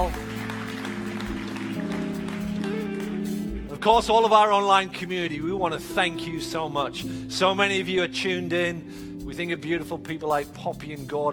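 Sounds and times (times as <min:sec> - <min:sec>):
audience applause: 0:00.0 - 0:03.6
speech: 0:03.8 - 0:11.3.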